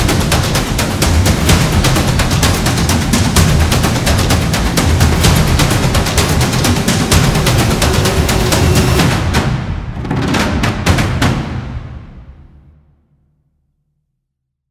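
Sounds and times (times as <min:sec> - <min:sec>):
cinematic epic intense drum beats: 0:00.0 - 0:12.5.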